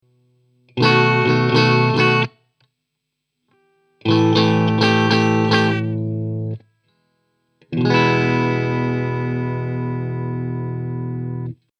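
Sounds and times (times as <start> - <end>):
guitar: 0.0 - 2.8, 3.4 - 11.7.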